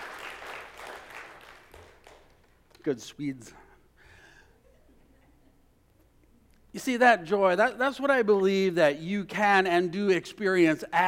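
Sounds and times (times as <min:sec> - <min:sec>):
church congregation clapping during a service: 0:00.0 - 0:02.8
speech: 0:02.8 - 0:03.6, 0:06.8 - 0:11.0.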